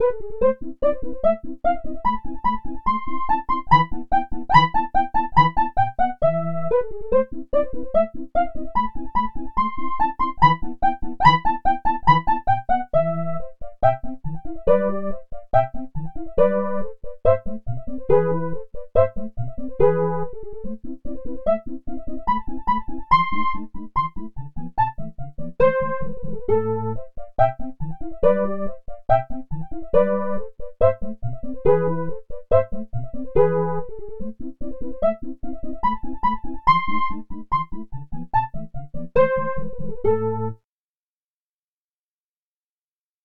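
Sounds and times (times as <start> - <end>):
chiffer synth lead: 0.0 - 40.6.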